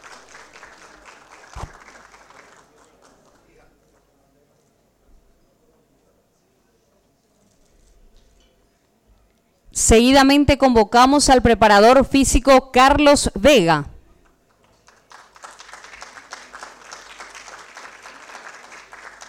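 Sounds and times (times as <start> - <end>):
audience applause: 0.0 - 3.6, 14.5 - 19.2
room noise: 0.0 - 19.2
speech: 9.9 - 13.9.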